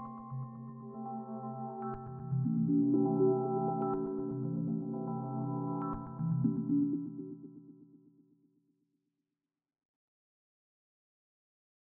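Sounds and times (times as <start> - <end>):
synth pads: 0.3 - 7.5.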